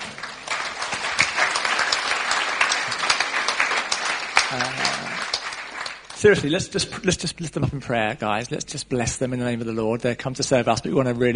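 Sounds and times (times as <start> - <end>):
audience applause: 0.0 - 6.6
speech: 4.5 - 5.1, 6.2 - 11.3.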